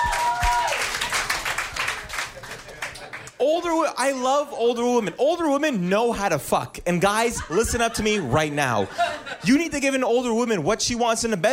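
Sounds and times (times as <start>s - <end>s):
person whooping: 0.0s - 0.9s
audience round of applause: 0.0s - 3.4s
laughter: 2.0s - 3.4s, 7.0s - 9.8s
speech: 3.4s - 11.5s.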